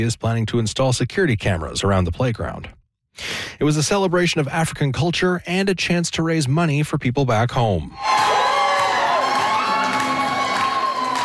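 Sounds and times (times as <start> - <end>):
speech: 0.0 - 8.4
crowd cheering and whooping at Winnipeg's AfriFest fashion show: 8.0 - 11.2.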